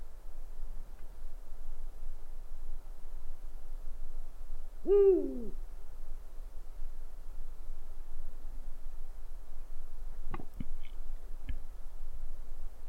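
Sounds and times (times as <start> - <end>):
quiet background rumble: 0.0 - 12.8
owl hooting: 4.8 - 5.6.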